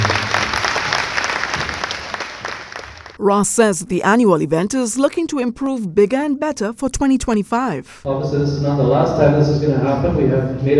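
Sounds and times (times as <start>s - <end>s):
crowd round of applause: 0.0s - 3.2s
speech: 3.2s - 10.7s.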